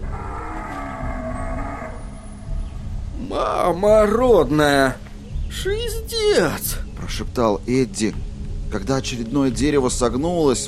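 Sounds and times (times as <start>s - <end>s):
huge creature bellowing roar: 0.0s - 2.2s
speech: 3.3s - 10.6s.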